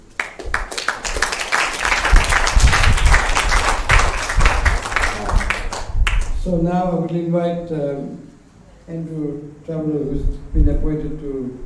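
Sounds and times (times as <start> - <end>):
round of applause: 0.1 - 6.4
speech: 6.5 - 8.3, 8.9 - 11.6.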